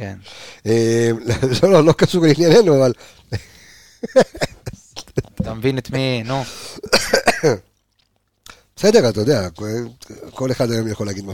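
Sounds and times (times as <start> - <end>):
speech: 0.0 - 4.4, 5.2 - 7.7, 8.8 - 11.3
person coughing: 6.6 - 7.7.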